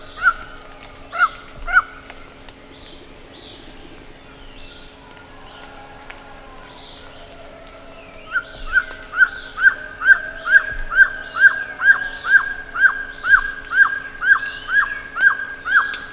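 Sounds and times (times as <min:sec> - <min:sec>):
bird calling with loud sharply arched notes: 0:00.0 - 0:05.7, 0:06.6 - 0:16.1.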